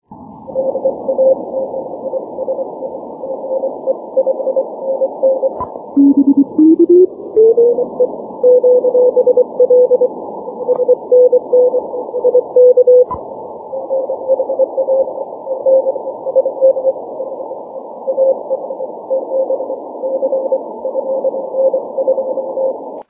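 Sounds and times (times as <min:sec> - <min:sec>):
12m band continuous wave signal: 0:00.0 - 0:23.0.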